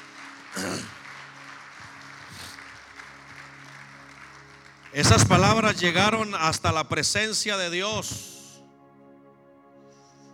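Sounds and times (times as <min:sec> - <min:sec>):
audience applause: 0:00.0 - 0:06.5
speech: 0:04.9 - 0:08.3.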